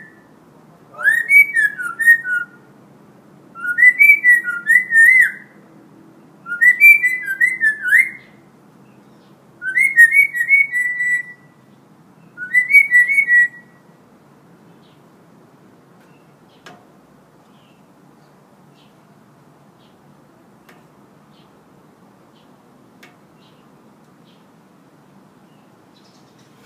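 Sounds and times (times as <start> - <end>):
Hill myna in full active song: 1.0 - 2.6, 3.6 - 5.5, 6.4 - 8.4, 9.6 - 11.6, 12.4 - 13.8.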